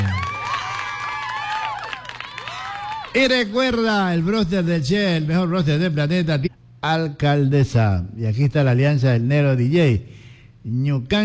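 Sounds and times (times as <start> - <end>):
cheering: 0.0 - 3.3
applause: 0.0 - 3.4
speech: 3.1 - 11.2.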